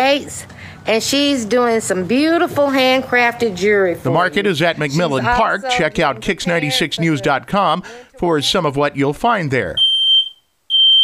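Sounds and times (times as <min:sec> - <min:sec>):
speech: 0:00.0 - 0:09.9
smoke detector alarm beeping: 0:09.8 - 0:11.0.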